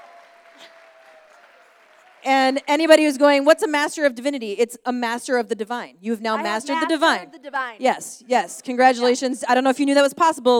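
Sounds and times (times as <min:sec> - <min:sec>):
audience applause: 0:00.0 - 0:03.0
speech: 0:02.2 - 0:10.5.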